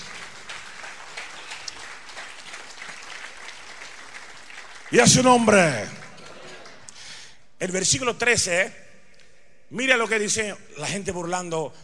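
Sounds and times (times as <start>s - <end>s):
audience applauding: 0.0s - 7.0s
speech: 4.9s - 6.0s, 7.6s - 8.8s, 9.7s - 11.8s.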